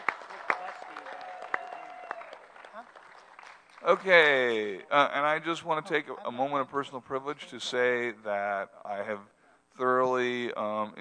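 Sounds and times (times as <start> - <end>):
applause: 0.0 - 4.6
speech: 2.8 - 3.0, 3.8 - 11.0.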